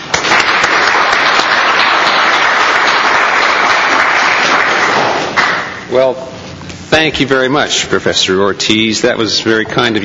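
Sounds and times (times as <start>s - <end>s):
audience applause welcoming a guest speaker at a law school lecture: 0.0s - 5.8s
speech: 5.9s - 10.0s.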